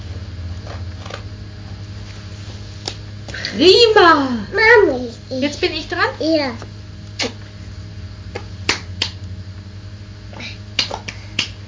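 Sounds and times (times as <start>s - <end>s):
steady low hum: 0.0s - 11.6s
speech: 3.5s - 7.4s
hand claps: 8.3s - 9.2s, 10.8s - 11.6s.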